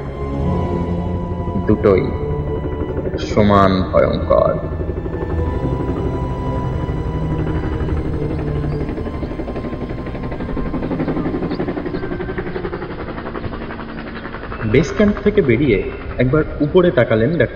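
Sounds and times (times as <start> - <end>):
helicopter rumbling above a base camp: 0.0 - 17.5
speech: 1.7 - 2.2, 3.2 - 5.0, 14.7 - 17.5.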